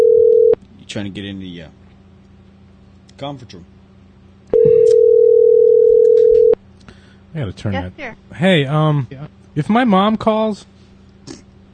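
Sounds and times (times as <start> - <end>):
telephone dial tone while dialing into a conference call: 0.0 - 0.6, 4.5 - 6.6
speech: 0.9 - 1.8, 3.2 - 3.8, 7.3 - 10.8.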